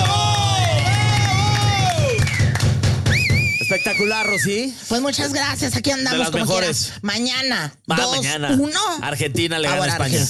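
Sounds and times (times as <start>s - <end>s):
crowd cheering and applauding: 0.0s - 4.7s
shrill wavering whistle: 0.6s - 4.7s
speech: 4.4s - 10.2s.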